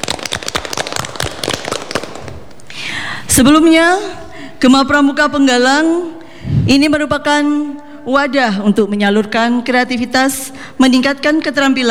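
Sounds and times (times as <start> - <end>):
audience clapping: 0.0 - 3.1
speech: 3.4 - 11.8.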